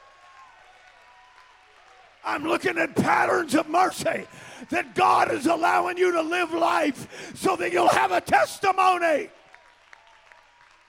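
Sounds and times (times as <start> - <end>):
audience clapping hands: 0.0 - 5.6, 8.6 - 10.8
speech: 2.2 - 9.4.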